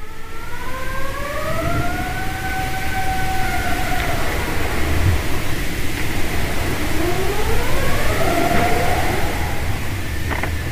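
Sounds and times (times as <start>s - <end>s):
two plates of sea ice rubbing underwater and singing: 1.6s - 10.6s.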